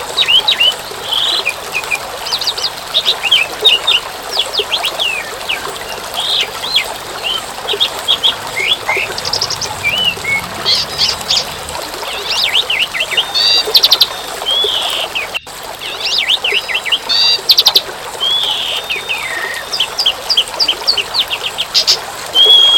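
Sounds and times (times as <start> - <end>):
bird song: 0.1 - 22.7.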